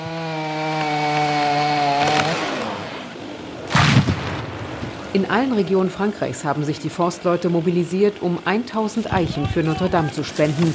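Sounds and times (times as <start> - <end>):
chainsaw cutting branches from an oak tree felled for Notre Dame: 0.0 - 3.7, 4.9 - 10.7
branches crashing to the ground: 0.0 - 5.2, 9.1 - 10.7
speech: 5.2 - 10.7.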